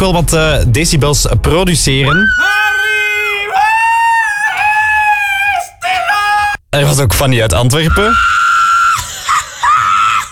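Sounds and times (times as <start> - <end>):
speech: 0.0 - 2.8, 6.7 - 8.4
loud piercing human scream: 2.1 - 6.6, 7.9 - 10.3.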